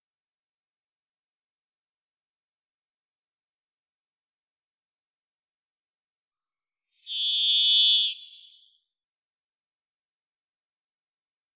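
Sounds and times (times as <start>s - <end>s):
varied thrush whistled note: 7.0s - 8.8s.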